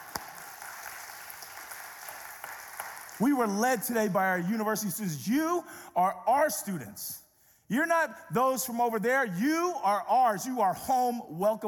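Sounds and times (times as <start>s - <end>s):
audience applause: 0.0s - 3.3s
speech: 3.2s - 11.6s.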